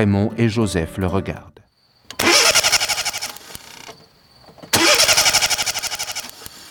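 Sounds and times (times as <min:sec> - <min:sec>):
speech: 0:00.0 - 0:01.5
car engine cranking but failing to start: 0:02.1 - 0:06.6.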